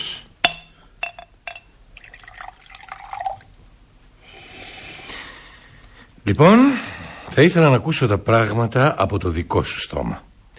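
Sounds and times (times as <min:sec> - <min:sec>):
glass clinks: 0:00.4 - 0:01.8
cognac being poured into a glass: 0:01.9 - 0:03.6
speech: 0:06.3 - 0:10.3.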